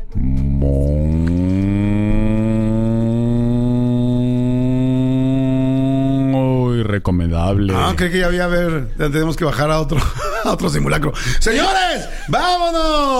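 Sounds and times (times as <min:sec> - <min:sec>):
cow mooing: 0:00.6 - 0:06.4
speech: 0:07.1 - 0:13.1.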